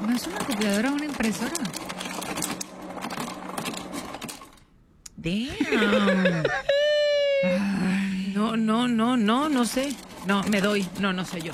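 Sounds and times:
ice dispensing from a refrigerator: 0:00.0 - 0:04.7, 0:09.1 - 0:11.5
speech: 0:00.2 - 0:02.5, 0:05.2 - 0:06.7, 0:08.5 - 0:11.5
laughter: 0:05.5 - 0:08.2.

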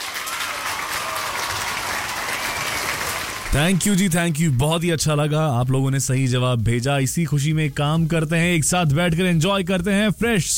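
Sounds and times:
applause sound effect: 0:00.0 - 0:04.5
speech: 0:03.5 - 0:10.5.

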